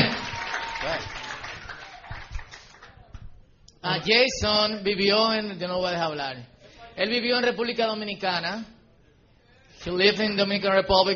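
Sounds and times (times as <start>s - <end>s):
audience applause: 0.0s - 3.1s
speech: 3.9s - 8.8s, 9.8s - 11.1s.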